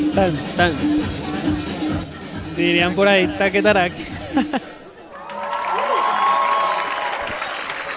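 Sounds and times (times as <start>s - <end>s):
speech: 0.2s - 4.8s
laughter: 3.9s - 4.9s
audience applause: 5.1s - 7.9s.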